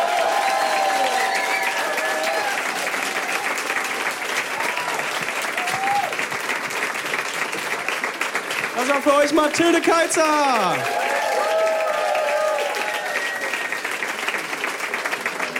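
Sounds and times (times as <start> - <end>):
whistles and cheers: 0.0 - 6.2, 10.8 - 14.2
audience applause: 0.0 - 15.5
speech: 8.9 - 11.0.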